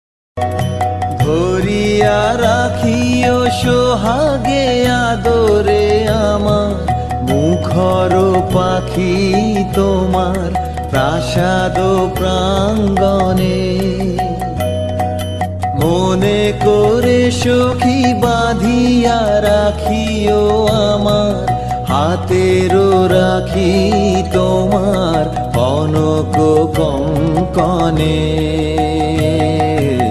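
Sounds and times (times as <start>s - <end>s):
Bengali romantic ringtone: 0.4s - 30.0s.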